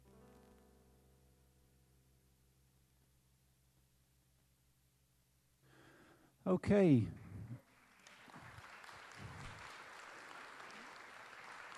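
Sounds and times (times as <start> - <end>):
speech: 6.4 - 7.2
audience applause: 7.6 - 11.7.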